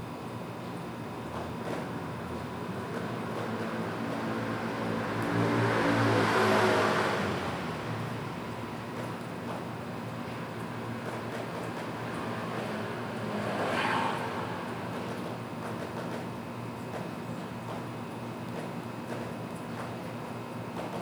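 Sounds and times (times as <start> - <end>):
low hum of a city at night in PingTung Taiwan: 0.2 - 20.9
vehicle passing: 1.3 - 16.4.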